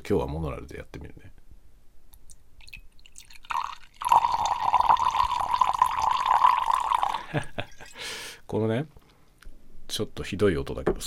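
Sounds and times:
speech: 0:00.1 - 0:01.4, 0:07.3 - 0:07.7, 0:08.5 - 0:09.0, 0:09.9 - 0:11.0
cola poured into a glass: 0:02.6 - 0:08.0
laughter: 0:07.2 - 0:08.0.

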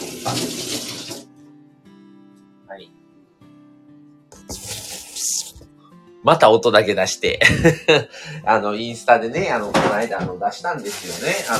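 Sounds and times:
tap water gushing to soak onions: 0:00.0 - 0:01.3, 0:04.4 - 0:05.7
speech: 0:00.2 - 0:00.9, 0:02.7 - 0:03.1, 0:06.2 - 0:11.5
laughter: 0:07.4 - 0:08.4.

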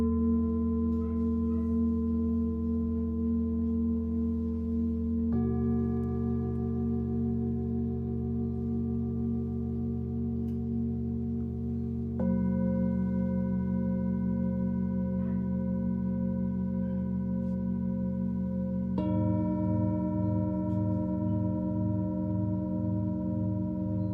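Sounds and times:
singing bowl tones: 0:00.0 - 0:24.1.

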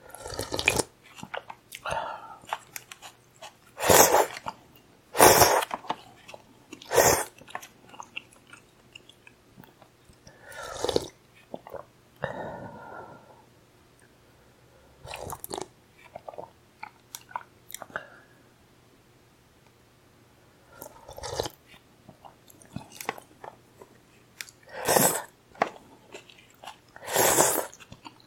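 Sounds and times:
slurping soba noodles: 0:00.1 - 0:01.3, 0:03.8 - 0:04.5, 0:05.2 - 0:05.8, 0:06.8 - 0:07.4, 0:10.5 - 0:11.8, 0:20.8 - 0:21.6, 0:24.7 - 0:27.9
person chewing soba noodles: 0:00.1 - 0:04.6, 0:05.2 - 0:09.8, 0:10.5 - 0:11.8, 0:15.1 - 0:17.9, 0:20.8 - 0:28.2.

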